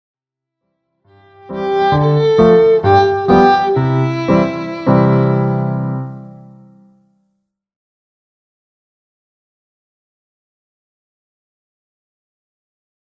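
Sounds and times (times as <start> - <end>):
Bohemian polka music: 1.4 - 6.6.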